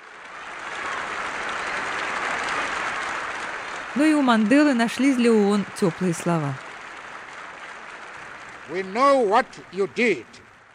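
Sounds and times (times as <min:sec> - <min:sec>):
stormy prolonged applause: 0:00.0 - 0:10.7
speech: 0:04.0 - 0:06.6, 0:08.7 - 0:10.5.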